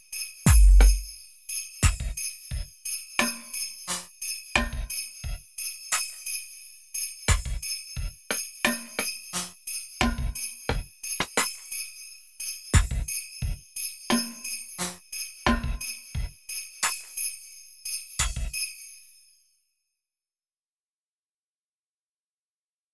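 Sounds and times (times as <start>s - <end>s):
drums: 0.5s - 1.1s, 1.8s - 6.2s, 7.3s - 11.6s, 12.8s - 17.1s, 18.2s - 18.6s.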